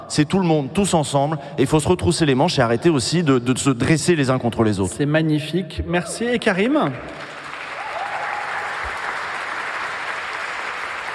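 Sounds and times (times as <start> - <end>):
speech: 0.1 - 7.3
timid applause: 6.9 - 11.1.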